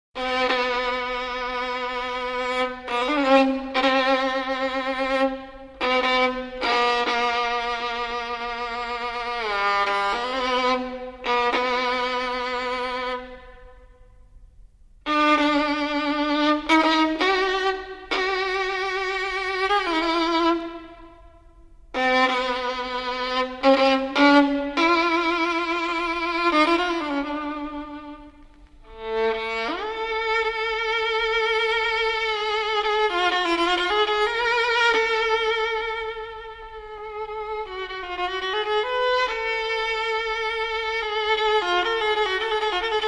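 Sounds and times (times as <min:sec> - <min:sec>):
solo violin in D major: 0:00.2 - 0:43.0.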